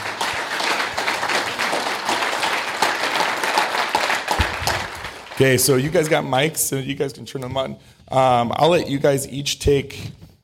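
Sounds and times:
audience applause: 0:00.0 - 0:06.2
speech: 0:05.4 - 0:10.2.

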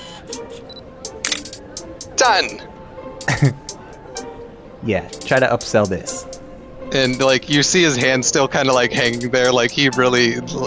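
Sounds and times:
camera mechanical shutter clicking: 0:01.2 - 0:01.6
speech: 0:02.2 - 0:03.6, 0:04.8 - 0:06.3, 0:06.9 - 0:10.6
laughter: 0:03.3 - 0:03.7.

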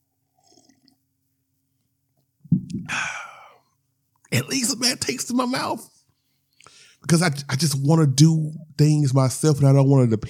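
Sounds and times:
person sipping coffee: 0:00.3 - 0:01.0
person swallowing: 0:02.5 - 0:03.5
speech: 0:02.7 - 0:03.2, 0:04.3 - 0:05.9, 0:07.0 - 0:10.2
breathy satisfied exhale: 0:02.8 - 0:03.6.

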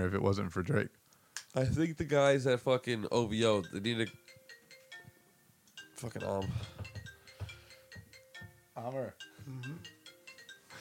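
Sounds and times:
speech: 0:00.0 - 0:04.4, 0:06.0 - 0:06.8, 0:08.8 - 0:09.9
phone ringing: 0:03.4 - 0:10.7.

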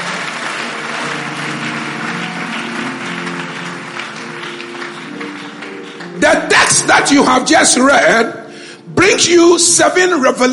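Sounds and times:
audience clapping hands: 0:00.0 - 0:08.0
speech: 0:06.7 - 0:08.4, 0:09.0 - 0:10.5.

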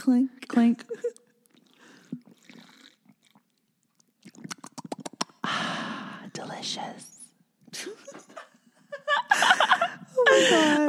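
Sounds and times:
speech: 0:00.0 - 0:01.2, 0:06.4 - 0:07.1, 0:09.4 - 0:10.8
person drinking water, slurping: 0:01.2 - 0:05.6.

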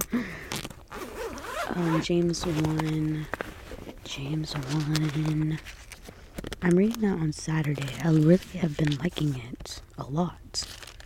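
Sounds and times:
zipper on a Bible case being unzipped: 0:00.5 - 0:05.4
speech: 0:01.8 - 0:03.4, 0:04.1 - 0:05.8, 0:06.6 - 0:10.8.

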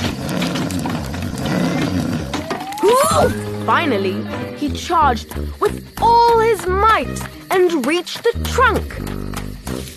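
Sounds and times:
giant's enormous snoring: 0:00.0 - 0:02.4
thin rising whistle: 0:02.4 - 0:03.6
speech: 0:03.2 - 0:09.2.

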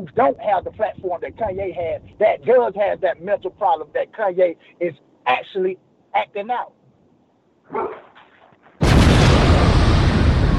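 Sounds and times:
speech: 0:00.0 - 0:06.8, 0:07.7 - 0:08.1
bomb explosion sound effect: 0:08.8 - 0:10.5.

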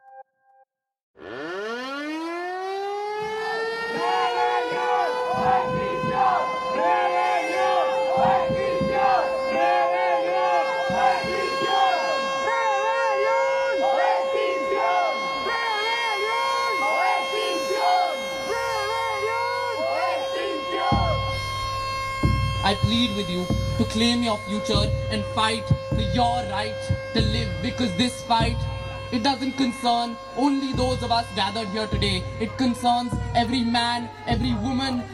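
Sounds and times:
siren wailing at an Extinction Rebellion protest: 0:01.2 - 0:35.1
crowd voices at an Extinction Rebellion protest: 0:03.2 - 0:35.1
speech: 0:24.1 - 0:35.1.

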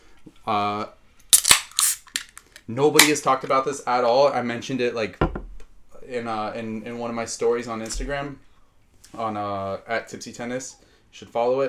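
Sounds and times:
speech: 0:00.4 - 0:01.0, 0:02.7 - 0:05.3, 0:06.1 - 0:08.5, 0:09.1 - 0:11.6
beer being opened: 0:01.3 - 0:02.4.

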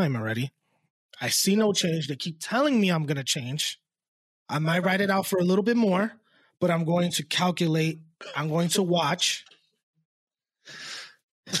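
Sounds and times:
speech: 0:00.0 - 0:03.8, 0:04.5 - 0:09.5, 0:10.7 - 0:11.5
person coughing after vaping: 0:08.2 - 0:08.7.

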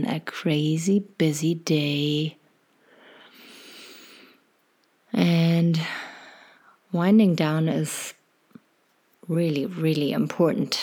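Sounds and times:
speech: 0:00.0 - 0:02.4, 0:06.9 - 0:08.2, 0:09.3 - 0:10.8
deep breath: 0:02.8 - 0:04.5, 0:05.8 - 0:06.8.

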